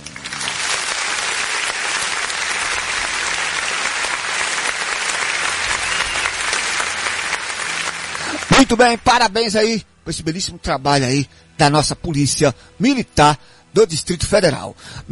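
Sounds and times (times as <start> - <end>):
applause sound effect from a button: 0.0 - 9.1
speech: 8.6 - 15.0.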